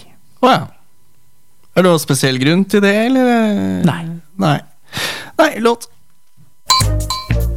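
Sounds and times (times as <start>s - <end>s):
speech: 0.4s - 0.7s, 1.8s - 4.7s, 5.4s - 5.9s
beer bottles clinking: 6.7s - 7.4s.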